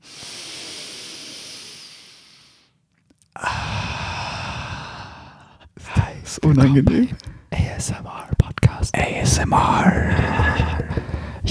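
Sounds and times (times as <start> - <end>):
deep breathing in through the nose and out through the mouth: 0.0 - 2.8, 3.4 - 6.0, 7.2 - 7.6, 9.5 - 11.5
speech: 6.3 - 8.3, 8.9 - 11.0.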